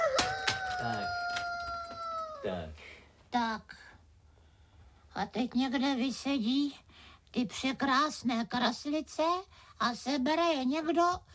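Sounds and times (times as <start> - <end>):
rooster crowing: 0.0 - 2.6
speech: 2.4 - 3.9, 5.2 - 11.3.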